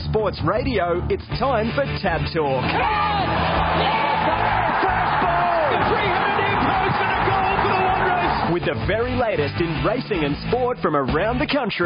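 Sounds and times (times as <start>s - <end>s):
speech: 0.1s - 4.6s, 8.5s - 11.8s
large crowd roaring at race start: 2.6s - 8.6s
scattered whoops and yells: 2.7s - 8.5s.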